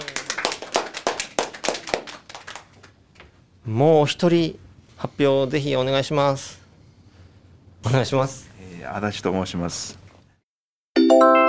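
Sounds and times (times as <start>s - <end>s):
small group applause: 0.0s - 3.0s
speech: 3.7s - 6.6s, 7.8s - 10.0s.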